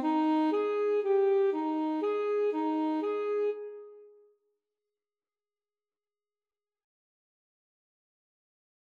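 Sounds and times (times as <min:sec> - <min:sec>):
saxophone melody in A: 0:00.0 - 0:04.2.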